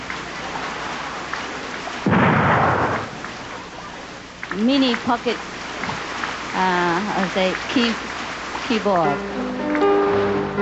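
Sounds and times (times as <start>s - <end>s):
steady rain-like hiss: 0.0s - 10.5s
gunfire blast used as a thunder effect: 2.0s - 3.2s
speech: 4.6s - 5.5s, 6.6s - 8.1s, 8.7s - 9.4s.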